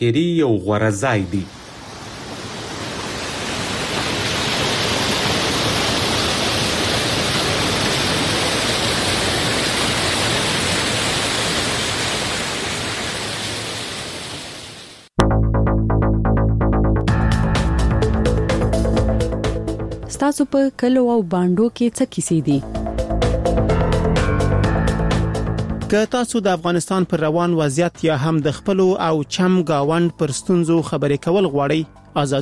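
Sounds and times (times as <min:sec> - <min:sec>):
speech: 0:00.0 - 0:01.6, 0:20.4 - 0:22.8, 0:25.9 - 0:32.3
rushing water at the Mazar Baba spring in Uruzgan: 0:01.2 - 0:15.1
music: 0:15.2 - 0:32.3.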